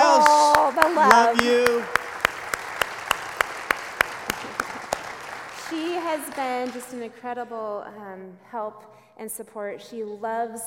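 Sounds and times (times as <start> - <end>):
hand claps: 0.0 - 7.1
speech: 6.1 - 10.6.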